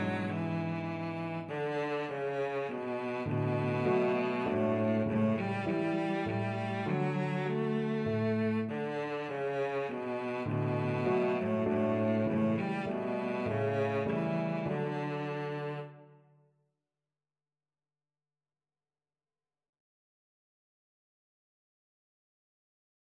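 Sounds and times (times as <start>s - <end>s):
violoncello: 0.0s - 16.2s.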